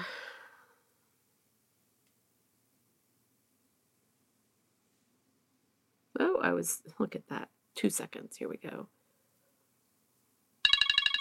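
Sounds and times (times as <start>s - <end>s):
speech: 6.4s - 9.0s
timer alarm ringing: 10.6s - 11.1s.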